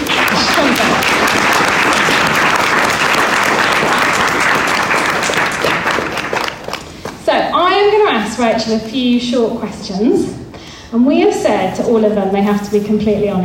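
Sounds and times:
audience applause: 0.0 - 7.1
speech: 8.4 - 13.4.

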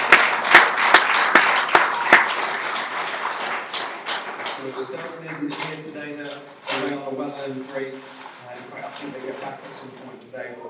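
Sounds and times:
audience clapping: 0.0 - 6.9
speech: 4.8 - 10.6.

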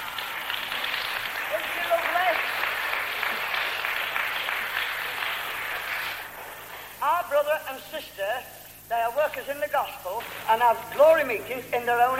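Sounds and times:
audience clapping: 0.0 - 6.9
speech: 7.7 - 12.1.

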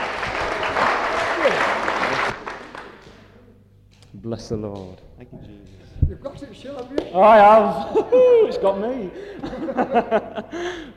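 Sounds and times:
audience clapping: 0.0 - 3.4
laughter: 1.1 - 2.4, 7.6 - 10.9
speech: 4.2 - 10.9.

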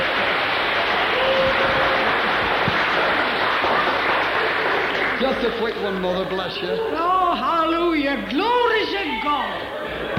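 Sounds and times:
audience clapping: 0.0 - 6.7
speech: 5.4 - 10.1.

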